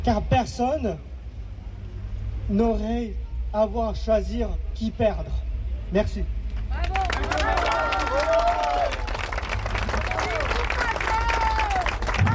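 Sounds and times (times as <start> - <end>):
speech: 0.0 - 1.1, 2.5 - 7.4
audience applause: 6.8 - 12.3.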